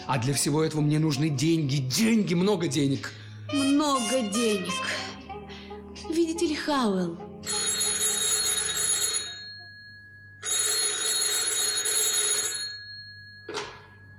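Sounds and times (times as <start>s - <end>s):
speech: 0.1s - 5.2s, 6.0s - 7.6s
telephone bell ringing in a radio drama: 7.4s - 14.1s.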